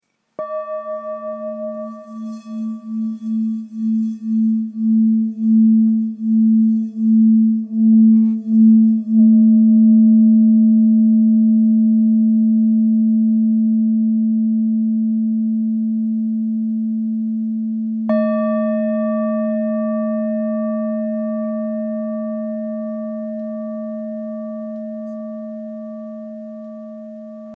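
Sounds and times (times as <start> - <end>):
old singing bowl in A: 0.4 - 27.5.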